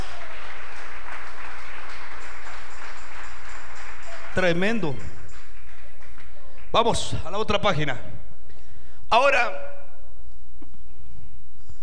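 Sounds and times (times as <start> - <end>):
audience clapping hands: 0.0 - 8.0
speech: 4.4 - 5.2, 6.8 - 8.2, 9.1 - 9.7.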